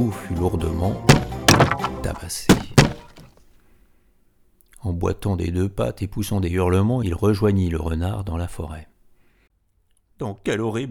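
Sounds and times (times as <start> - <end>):
speech: 0.0 - 1.2, 2.0 - 2.7, 4.8 - 8.9, 10.2 - 10.8
crockery shattering with a loud crash: 1.1 - 3.3.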